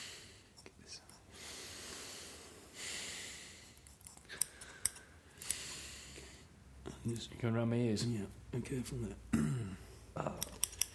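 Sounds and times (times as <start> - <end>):
breathy hiss: 0.0 - 6.6
scissors cutting hair: 3.8 - 5.6, 10.4 - 10.9
speech: 7.1 - 9.5.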